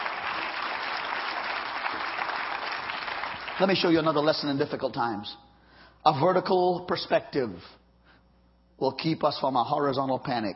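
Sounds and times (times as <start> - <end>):
audience clapping hands: 0.0 - 4.4
speech: 3.6 - 7.8, 8.8 - 10.5.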